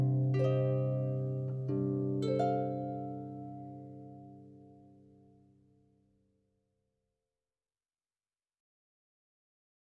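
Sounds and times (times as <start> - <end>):
instrumental music: 0.0 - 5.8.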